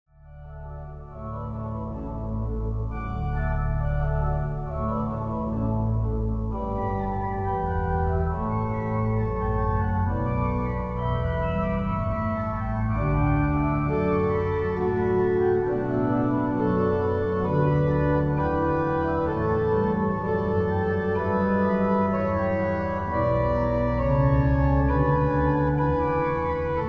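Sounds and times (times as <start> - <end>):
chorale prelude: 0.2 - 26.8.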